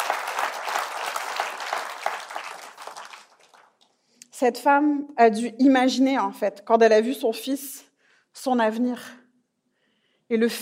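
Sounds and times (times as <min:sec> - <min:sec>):
audience applause: 0:00.0 - 0:03.8
speech: 0:04.4 - 0:09.2, 0:10.3 - 0:10.6.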